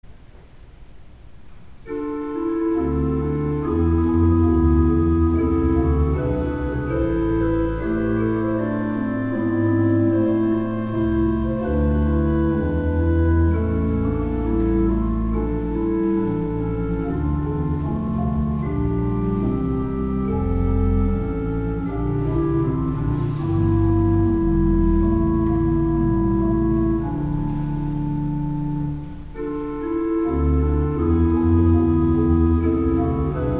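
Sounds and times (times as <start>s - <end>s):
organ chorale prelude: 1.8s - 33.5s.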